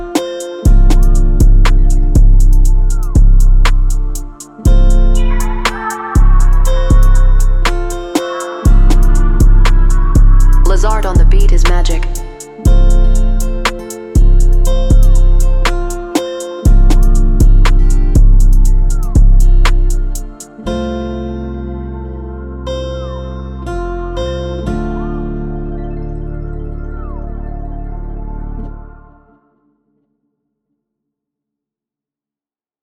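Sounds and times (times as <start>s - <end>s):
trap type beat in A minor: 0.0s - 20.6s.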